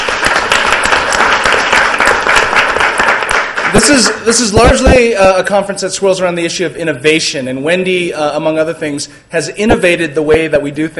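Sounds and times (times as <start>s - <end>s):
audience applause: 0.0s - 4.3s
speech: 3.8s - 10.9s.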